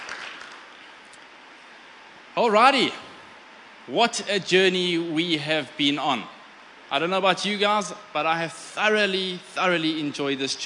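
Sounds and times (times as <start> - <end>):
round of applause: 0.0 - 0.8
speech: 2.4 - 3.0, 3.9 - 10.6.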